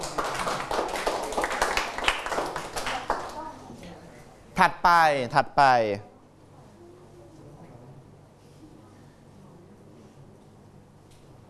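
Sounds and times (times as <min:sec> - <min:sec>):
classroom students clapping: 0:00.0 - 0:03.5
speech: 0:04.6 - 0:06.1.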